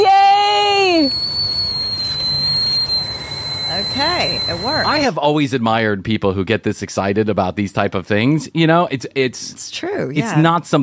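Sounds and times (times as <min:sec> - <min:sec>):
whistling squeak like a tea kettle: 0:00.0 - 0:05.2
speech: 0:04.5 - 0:10.8.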